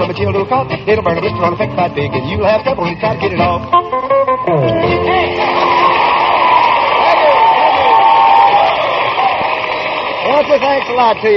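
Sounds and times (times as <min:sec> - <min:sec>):
speech: 0:00.2 - 0:04.8, 0:10.4 - 0:11.3
live audience applauding and cheering: 0:05.1 - 0:11.3.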